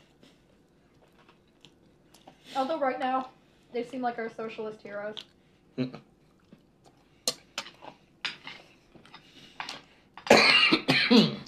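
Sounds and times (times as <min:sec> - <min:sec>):
speech: 0:02.6 - 0:06.1
person coughing after choking on a swallow: 0:10.2 - 0:11.4.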